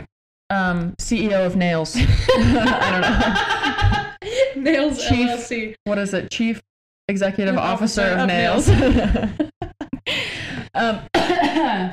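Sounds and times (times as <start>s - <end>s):
speech: 0.5s - 4.0s, 4.6s - 9.5s, 10.8s - 11.9s
laughter: 2.0s - 5.4s, 7.6s - 10.4s, 11.2s - 11.9s
person coughing: 11.1s - 11.8s.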